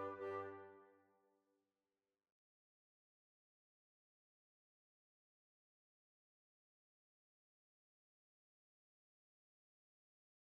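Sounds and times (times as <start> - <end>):
hornpipe tune: 0.0 - 0.8.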